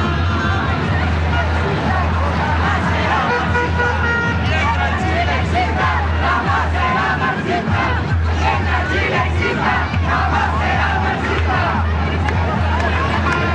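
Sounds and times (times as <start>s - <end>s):
large crowd shouting and cheering while awaiting a speech: 0.0s - 13.5s.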